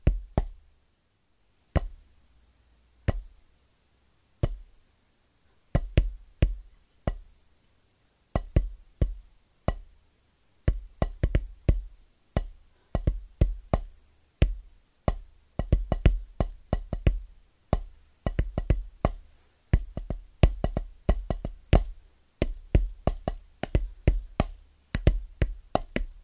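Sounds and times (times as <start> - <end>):
tapping on drum pads: 0.0 - 0.6, 1.8 - 2.0, 3.1 - 3.3, 4.4 - 4.7, 5.8 - 7.3, 8.4 - 9.9, 10.7 - 26.2.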